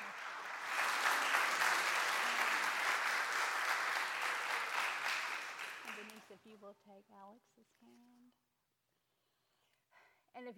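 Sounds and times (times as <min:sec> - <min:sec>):
audience applauding: 0:00.0 - 0:06.3
speech: 0:06.4 - 0:08.5, 0:10.4 - 0:10.5.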